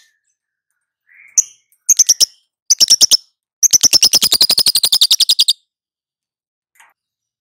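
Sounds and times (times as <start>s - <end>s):
lovebird long chattering calls: 1.1s - 5.5s.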